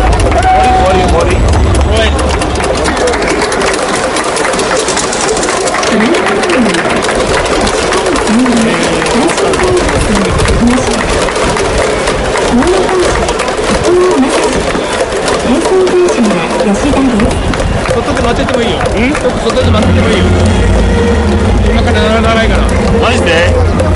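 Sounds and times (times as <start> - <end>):
low rumble: 0.0 - 2.9, 19.5 - 23.9
crowd murmur inside Hanshin Koshien Stadium: 0.0 - 23.9.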